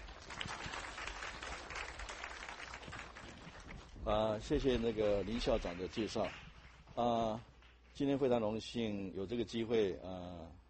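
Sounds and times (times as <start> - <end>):
audience applause: 0.0 - 4.0, 4.6 - 6.8
speech: 4.1 - 6.4, 7.0 - 10.6.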